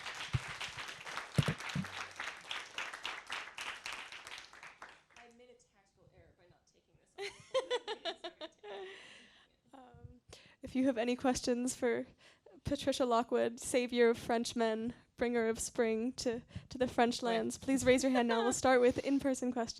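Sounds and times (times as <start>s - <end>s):
audience applause: 0.0s - 5.2s
laughter: 7.2s - 9.0s, 18.0s - 19.2s
speech: 10.8s - 19.7s.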